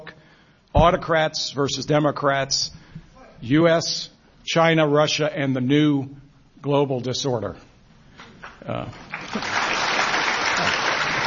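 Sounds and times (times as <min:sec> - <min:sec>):
speech: 0:00.7 - 0:02.8, 0:03.4 - 0:07.7, 0:08.6 - 0:09.6
audience applause: 0:09.0 - 0:11.2.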